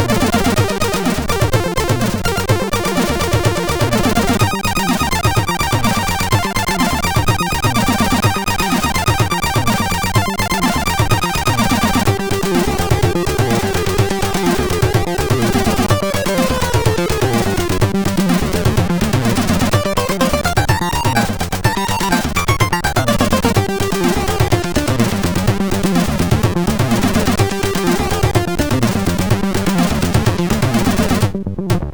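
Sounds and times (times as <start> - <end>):
heavy acid synth on MOS6581R2 chip: 0.0 - 31.9.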